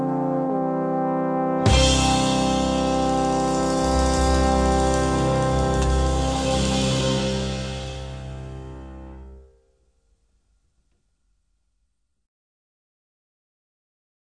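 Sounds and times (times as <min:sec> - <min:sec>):
trombone: 0:00.0 - 0:09.5.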